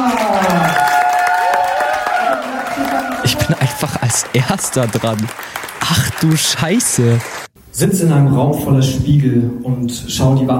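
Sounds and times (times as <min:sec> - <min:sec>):
audience applause: 0:00.0 - 0:07.5
speech: 0:04.4 - 0:10.5.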